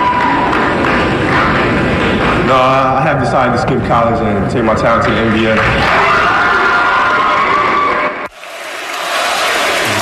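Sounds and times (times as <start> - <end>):
crowd cheering in an arena: 0.0 - 2.5, 5.0 - 9.9
softer crowd murmur: 0.5 - 3.0
speech: 2.5 - 6.1.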